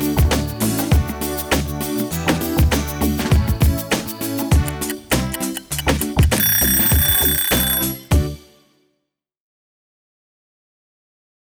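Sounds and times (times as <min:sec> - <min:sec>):
instrumental music: 0:00.0 - 0:08.7.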